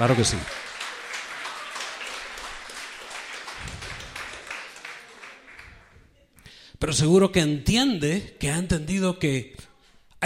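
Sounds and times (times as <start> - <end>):
speech: 0.0 - 0.7, 6.8 - 10.2
audience applause: 0.0 - 6.0.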